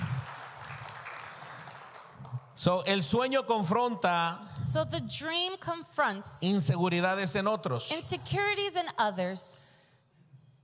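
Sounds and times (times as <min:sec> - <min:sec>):
faint applause for a translator during a bilingual sermon: 0:00.0 - 0:02.6
speech: 0:02.6 - 0:09.6.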